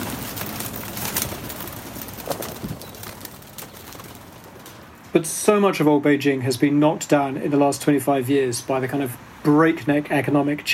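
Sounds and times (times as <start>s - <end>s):
pigeons cooing on a rooftop coop: 0.0s - 4.9s
pigeon wings fluttering: 0.0s - 5.1s
dense outdoor hum: 0.0s - 10.7s
speech: 5.2s - 10.7s.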